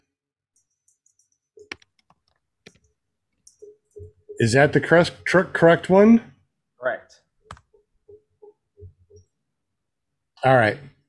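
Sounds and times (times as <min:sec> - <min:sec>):
typing on a computer keyboard: 0:00.6 - 0:04.3
speech: 0:04.0 - 0:06.3, 0:10.4 - 0:10.9.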